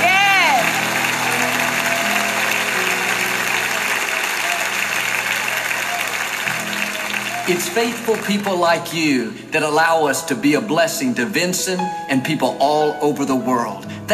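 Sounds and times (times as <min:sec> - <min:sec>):
crowd clapping: 0:00.0 - 0:09.1
speech: 0:07.5 - 0:14.1.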